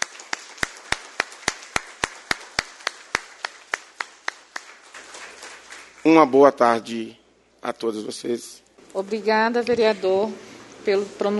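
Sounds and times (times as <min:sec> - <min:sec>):
evenly paced clapping: 0:00.0 - 0:06.8
speech: 0:06.0 - 0:11.3.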